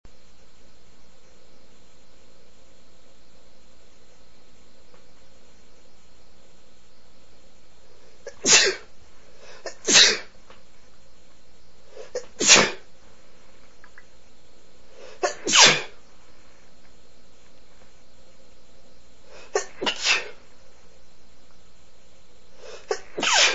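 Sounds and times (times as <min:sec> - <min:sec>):
man sneezing: 0:08.3 - 0:08.8, 0:12.0 - 0:12.8, 0:15.1 - 0:16.0, 0:19.4 - 0:20.4, 0:22.7 - 0:23.5.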